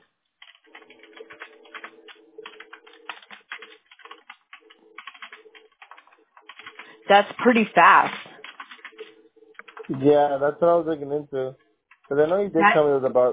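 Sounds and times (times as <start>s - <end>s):
typing a note on a computer keyboard: 0.4s - 10.1s, 11.6s - 12.4s
speech: 7.1s - 8.3s, 9.9s - 13.3s.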